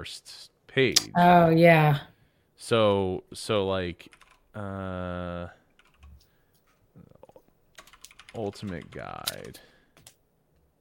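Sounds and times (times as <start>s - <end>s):
speech: 0.0s - 5.6s, 8.4s - 9.7s
typing a web search on a computer keyboard: 4.1s - 4.4s, 5.8s - 6.3s, 7.3s - 10.2s.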